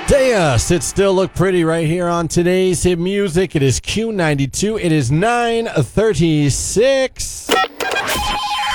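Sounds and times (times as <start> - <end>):
speech: 0.1 - 8.6
telephone ringing with a listener's call to a radio station: 7.5 - 8.6.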